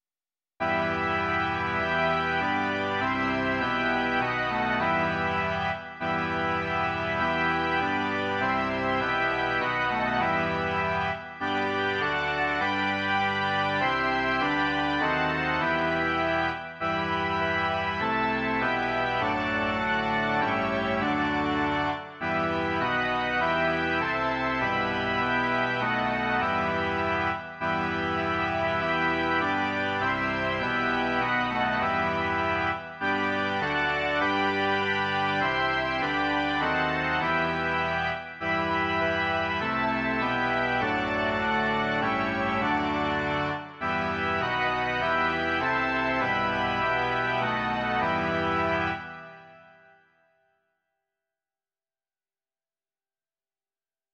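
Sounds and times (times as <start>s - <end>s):
organ: 0.6s - 50.1s.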